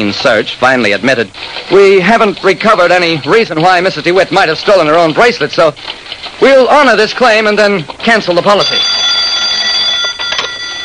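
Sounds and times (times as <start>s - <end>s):
speech: 0.1s - 9.0s
telephone ringing: 8.2s - 10.8s.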